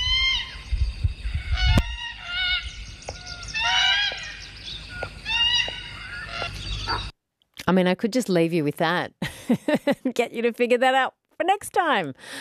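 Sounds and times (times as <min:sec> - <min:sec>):
red-tailed black cockatoo calls: 0:01.3 - 0:07.1
speech: 0:07.7 - 0:12.3.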